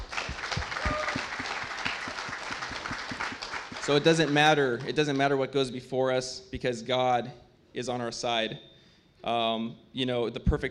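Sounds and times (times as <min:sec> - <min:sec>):
audience clapping: 0:00.0 - 0:05.3
speech: 0:03.9 - 0:10.6.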